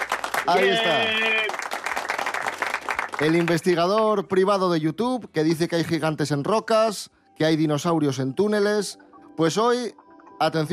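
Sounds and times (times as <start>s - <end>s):
applause: 0.0s - 4.2s
speech: 0.5s - 1.5s, 3.2s - 10.7s.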